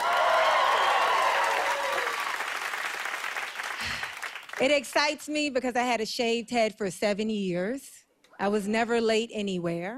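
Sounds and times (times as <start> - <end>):
audience applause at a stand-up comedy act: 0.0 - 4.6
speech: 4.6 - 9.9.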